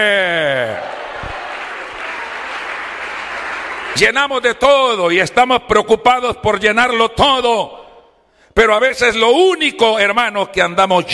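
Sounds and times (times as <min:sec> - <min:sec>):
speech: 0:00.0 - 0:00.3, 0:04.0 - 0:07.8, 0:08.6 - 0:11.1
audience clapping: 0:00.7 - 0:04.6.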